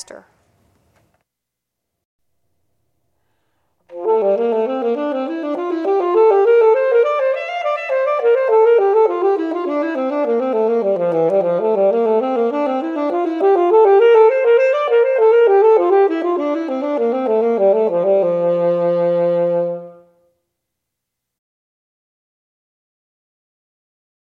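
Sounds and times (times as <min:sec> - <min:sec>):
saxophone playing thirds in D major: 0:03.9 - 0:20.3.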